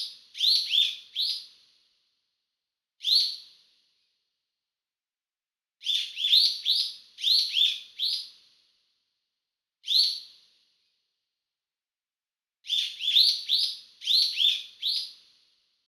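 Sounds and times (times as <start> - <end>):
bird: 0.0 - 1.8, 3.0 - 3.8, 5.8 - 8.7, 9.8 - 10.6, 12.6 - 15.6.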